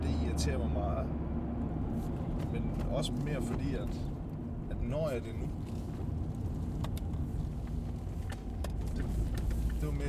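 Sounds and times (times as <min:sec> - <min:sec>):
car engine and road noise driving through Mørke: 0:00.0 - 0:10.0
speech: 0:00.4 - 0:05.8, 0:09.8 - 0:10.0.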